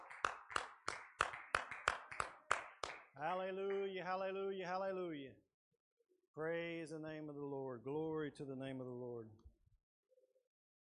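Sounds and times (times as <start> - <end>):
audience clapping in unison: 0.0 - 4.0
speech: 3.2 - 5.5, 6.4 - 9.4.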